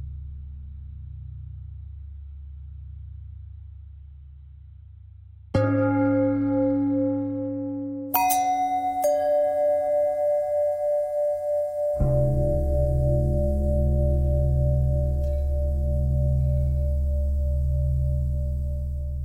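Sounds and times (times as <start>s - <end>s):
long pentatonic bell tones: 5.6s - 19.2s.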